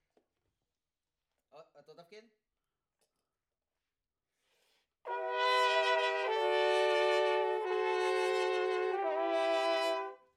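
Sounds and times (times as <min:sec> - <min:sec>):
trumpet: 0:05.1 - 0:10.3.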